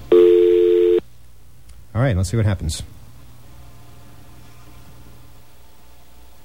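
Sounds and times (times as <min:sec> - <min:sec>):
dial tone: 0:00.1 - 0:01.0
speech: 0:02.0 - 0:03.0.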